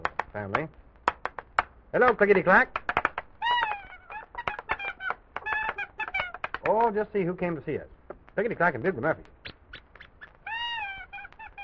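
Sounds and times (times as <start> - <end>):
speech: 0.4 - 0.8, 1.9 - 2.8, 6.7 - 9.3
puppy whimpering: 3.4 - 6.8, 9.5 - 11.6.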